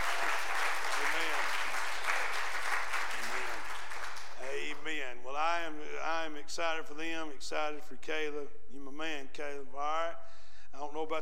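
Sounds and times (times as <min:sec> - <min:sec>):
audience clapping: 0:00.0 - 0:04.8
speech: 0:06.3 - 0:11.2.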